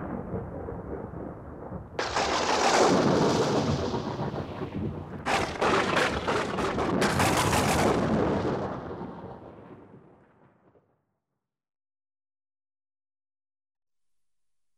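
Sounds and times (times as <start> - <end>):
rain: 0.0 - 10.1
thunder: 0.0 - 10.9.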